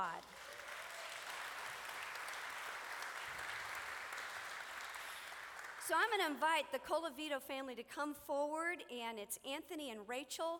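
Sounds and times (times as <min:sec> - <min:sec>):
speech: 0:00.0 - 0:00.4, 0:05.9 - 0:10.5
audience applauding: 0:00.0 - 0:05.9.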